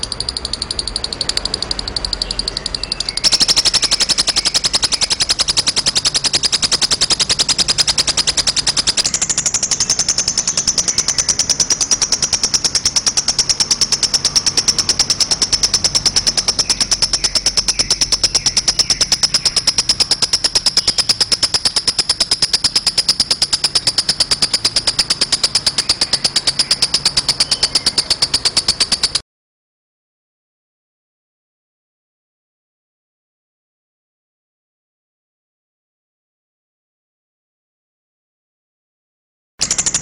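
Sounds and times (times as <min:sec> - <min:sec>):
snow lovebird calling: 0:00.0 - 0:29.2.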